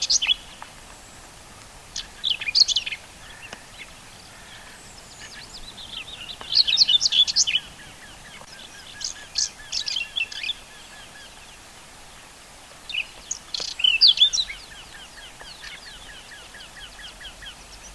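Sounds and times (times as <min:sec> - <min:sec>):
whinchat song Saxicola rubetra: 0:02.0 - 0:11.7, 0:12.8 - 0:17.9.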